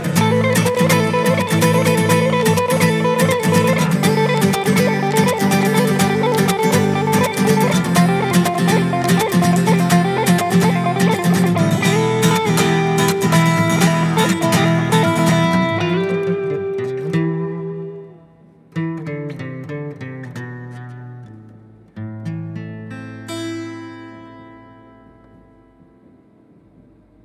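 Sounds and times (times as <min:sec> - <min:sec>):
flamenco music: 0:00.0 - 0:21.1.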